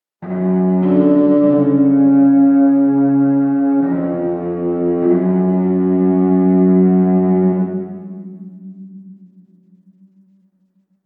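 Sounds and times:
cello: 0.2s - 8.6s.

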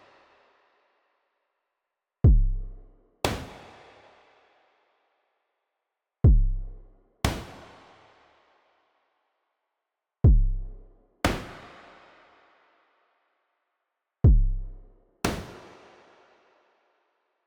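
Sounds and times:
drums: 2.2s - 3.9s, 6.2s - 7.9s, 10.2s - 11.8s, 14.2s - 16.0s.

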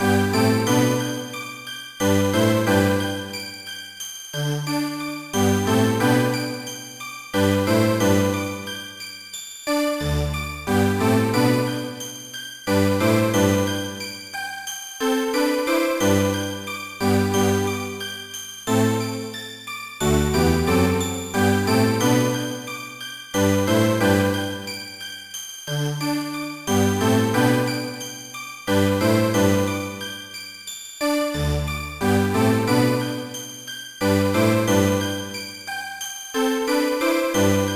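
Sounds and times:
background music: 0.0s - 37.7s.

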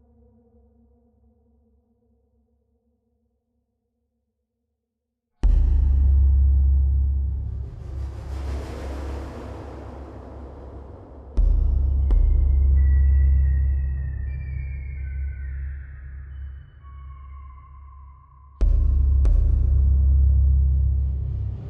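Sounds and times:
level ambience: 5.5s - 21.6s.

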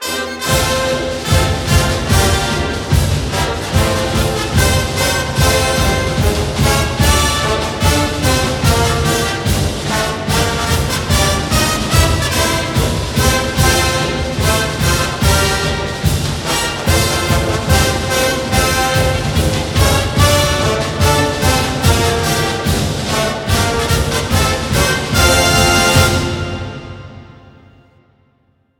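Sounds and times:
broadcast fight song music: 0.0s - 27.8s.

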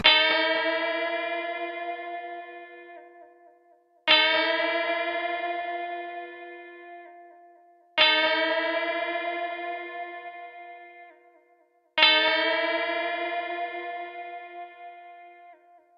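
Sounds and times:
guitar: 0.0s - 15.9s.

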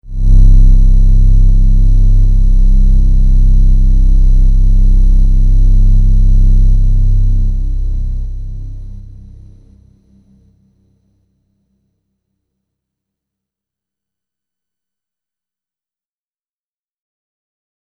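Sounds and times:
downtown overlay drone: 0.0s - 10.6s.

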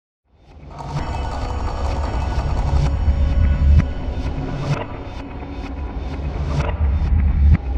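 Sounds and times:
music beat: 0.7s - 7.6s.

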